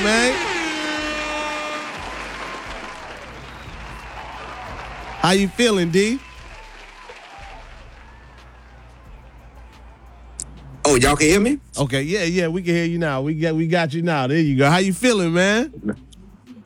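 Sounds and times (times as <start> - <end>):
audience applause: 0.0 - 11.2
speech: 5.2 - 6.3, 11.0 - 16.1.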